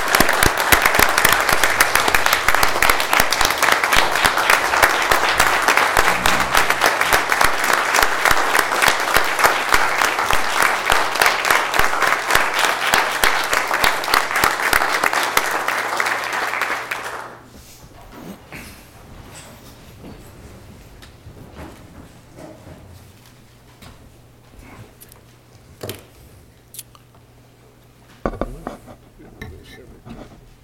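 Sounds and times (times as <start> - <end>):
audience applause: 0.0 - 17.5.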